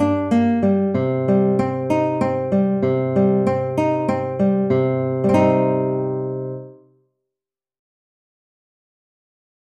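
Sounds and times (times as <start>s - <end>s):
folk tune instrumental in C Dorian without vocals: 0.0s - 6.9s.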